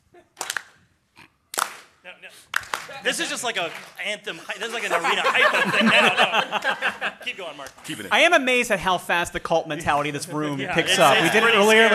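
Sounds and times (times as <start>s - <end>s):
slow hand claps: 0.4s - 0.8s, 1.5s - 3.0s
speech: 2.0s - 11.9s
laughter: 4.3s - 8.1s.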